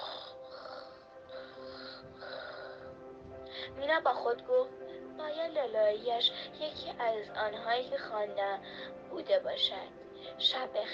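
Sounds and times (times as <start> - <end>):
snoring from a brave sleeper in deep sleep: 0.0 - 2.9
speech: 3.6 - 10.9.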